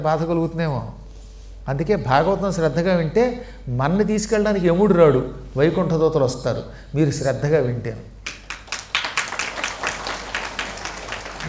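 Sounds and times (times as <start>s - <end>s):
speech: 0.0s - 1.0s, 1.6s - 8.2s
audience clapping at a devotional Bhagavatam discourse: 8.2s - 11.4s.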